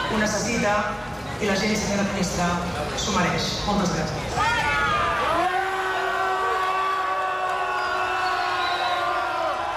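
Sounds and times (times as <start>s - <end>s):
speech: 0.1s - 4.7s
street crowd shouting in protest: 4.4s - 9.7s.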